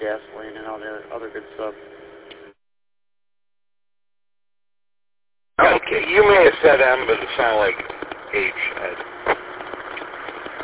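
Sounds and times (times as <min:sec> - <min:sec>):
speech: 0:00.0 - 0:02.0
car cabin engine noise while driving: 0:00.0 - 0:02.6, 0:05.6 - 0:10.6.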